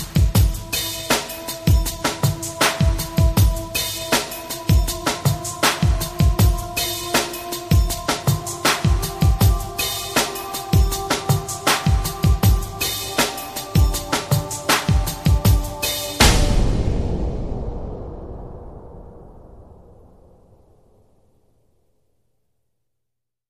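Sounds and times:
north country fantasy music: 0:00.2 - 0:17.7.

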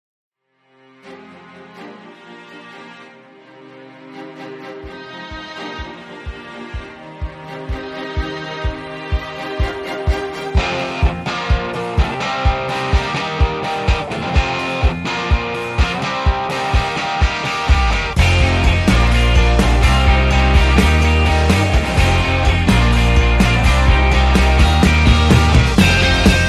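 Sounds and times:
orchestral music: 0:00.7 - 0:26.4.

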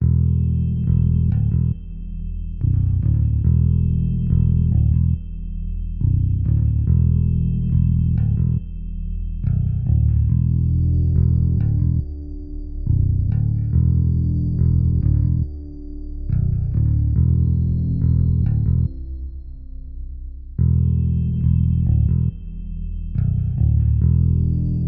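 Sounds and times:
underscore bass: 0:00.0 - 0:24.8.

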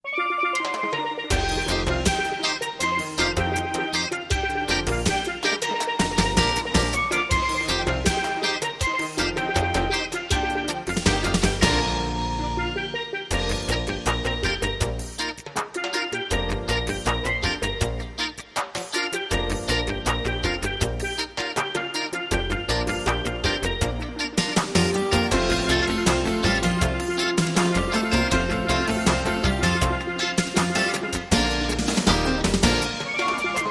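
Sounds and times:
calypso music: 0:00.0 - 0:33.6.

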